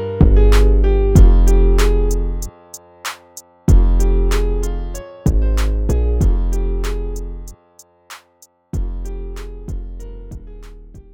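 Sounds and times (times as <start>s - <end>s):
hip hop music: 1.2s - 7.2s.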